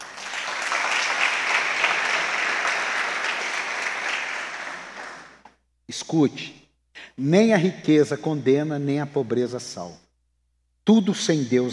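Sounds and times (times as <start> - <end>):
crowd applauding: 0.0 - 5.4
speech: 5.9 - 6.6, 7.2 - 10.0, 10.9 - 11.7.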